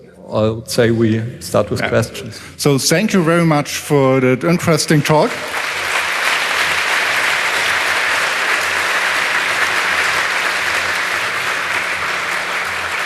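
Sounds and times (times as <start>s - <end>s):
speech: 0.3s - 6.0s
audience applause: 5.0s - 13.0s.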